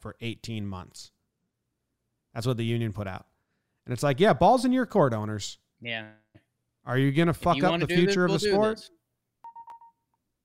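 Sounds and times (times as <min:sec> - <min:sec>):
speech: 0:00.0 - 0:01.2, 0:02.4 - 0:03.3, 0:03.9 - 0:06.2, 0:06.8 - 0:09.0
phone AirDrop notification sound: 0:09.4 - 0:10.0.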